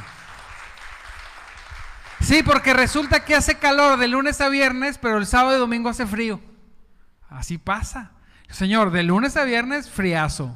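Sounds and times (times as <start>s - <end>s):
audience applause: 0.0s - 2.5s
speech: 2.2s - 6.5s, 7.3s - 10.5s.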